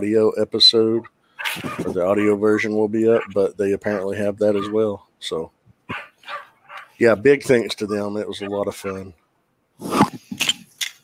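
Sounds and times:
speech: 0:00.0 - 0:06.4, 0:07.0 - 0:09.2
rat terrier barking: 0:01.4 - 0:04.8, 0:05.9 - 0:07.0.

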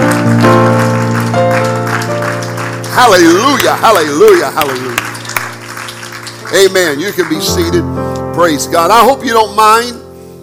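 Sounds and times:
audience hand clapping: 0:00.0 - 0:07.9
speech: 0:03.0 - 0:05.1, 0:06.5 - 0:10.0.

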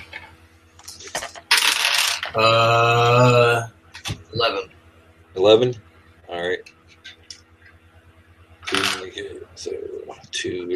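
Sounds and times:
dice clattering across a hard surface: 0:01.1 - 0:02.4, 0:08.7 - 0:09.2
speech: 0:02.3 - 0:03.7, 0:04.4 - 0:05.8, 0:09.2 - 0:10.7.

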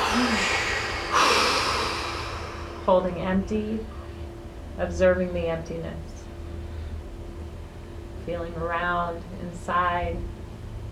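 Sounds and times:
powerful exhale during a guided breathing exercise at a ceremony: 0:00.0 - 0:03.2
steady hiss: 0:00.0 - 0:03.9
speech: 0:02.9 - 0:04.0, 0:04.8 - 0:06.1, 0:08.2 - 0:10.4.

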